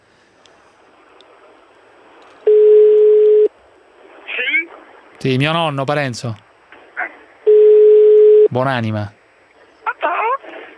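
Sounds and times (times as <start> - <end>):
phone ringback tone: 2.5 - 3.5, 7.5 - 8.5
speech: 5.2 - 6.5, 8.5 - 9.2.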